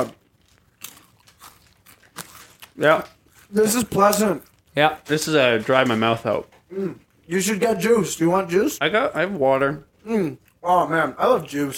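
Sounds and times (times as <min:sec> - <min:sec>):
crunching on a snack: 0:00.0 - 0:05.1
speech: 0:02.8 - 0:11.7.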